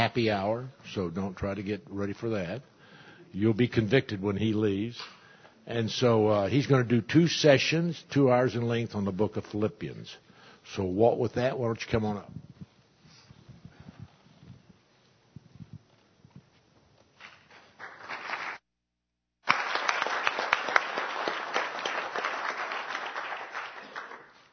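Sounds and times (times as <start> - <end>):
speech: 0.0 - 2.7, 3.3 - 12.5
audience applause: 17.8 - 18.6, 19.4 - 24.5.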